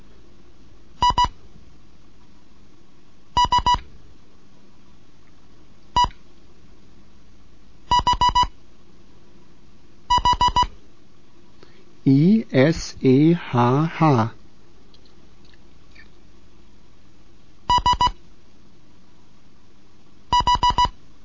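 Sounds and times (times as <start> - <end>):
Morse code beeps: 1.0 - 1.3, 3.4 - 3.8, 7.9 - 8.5, 10.1 - 10.7, 17.7 - 18.2, 20.3 - 20.9
speech: 12.1 - 14.4.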